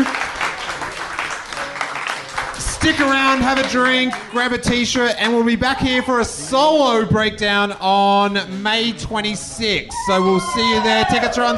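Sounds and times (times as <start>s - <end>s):
audience applause: 0.0s - 4.3s
speech: 2.8s - 11.5s.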